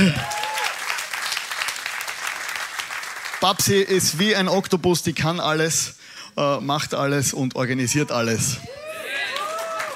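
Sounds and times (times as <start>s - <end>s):
speech: 0.0s - 0.3s, 3.4s - 8.8s
audience applause: 0.0s - 3.9s, 9.0s - 9.9s.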